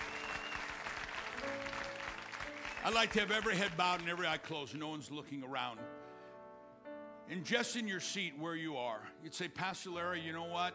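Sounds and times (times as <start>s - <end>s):
audience clapping: 0.0s - 4.8s
speech: 2.8s - 6.0s, 7.3s - 10.7s.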